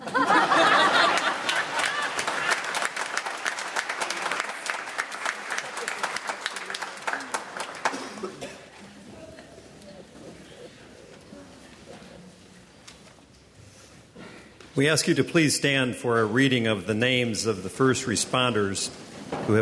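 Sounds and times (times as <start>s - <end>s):
large crowd applause: 0.0s - 8.8s
murmurs and chuckles: 8.2s - 12.2s
speech: 14.8s - 19.6s.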